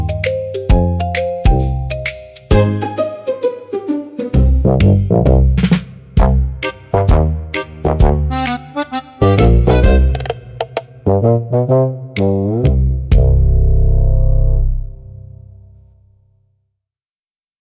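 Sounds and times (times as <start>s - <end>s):
sneaky bouncy pirate music: 0.0s - 13.9s.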